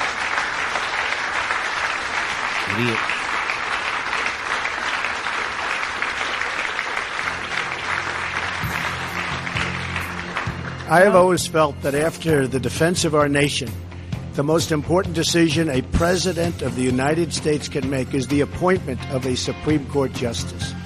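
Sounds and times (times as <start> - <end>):
audience clapping near microphone: 0.0 - 11.9
speech: 2.8 - 3.2, 10.9 - 13.8, 14.4 - 20.8.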